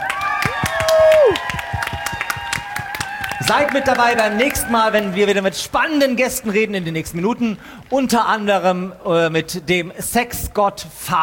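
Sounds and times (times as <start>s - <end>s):
person whooping: 0.0s - 5.0s
live audience clapping: 0.0s - 8.5s
speech: 3.5s - 11.2s.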